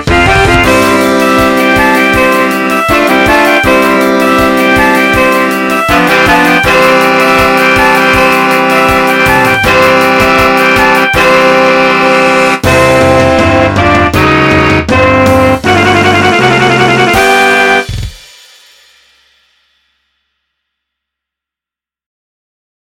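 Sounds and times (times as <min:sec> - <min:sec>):
saxophone quartet background music remix: 0:00.0 - 0:17.9.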